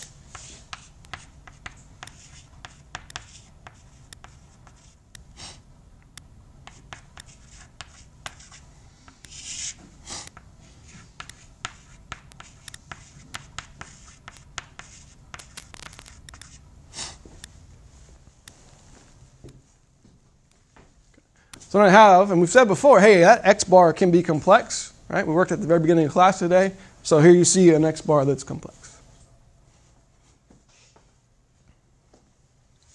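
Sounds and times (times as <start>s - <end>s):
writing on a board during a lecture: 0.3s - 5.0s, 6.6s - 16.6s
speech: 21.7s - 28.8s.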